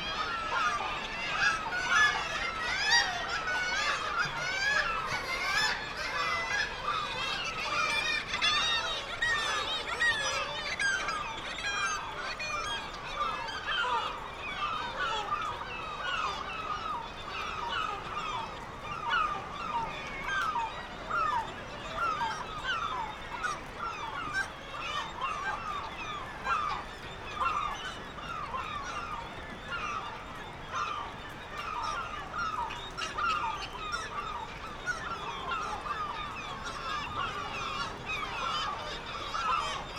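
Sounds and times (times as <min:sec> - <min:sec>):
black-legged kittiwakes calling in a colony: 0:00.0 - 0:39.9.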